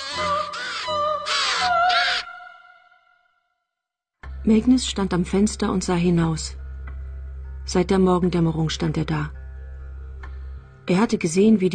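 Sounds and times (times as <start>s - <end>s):
ravens pecking at a dead body cawing: 0.0s - 2.9s
speech: 4.5s - 6.6s, 7.7s - 9.4s, 10.9s - 11.7s.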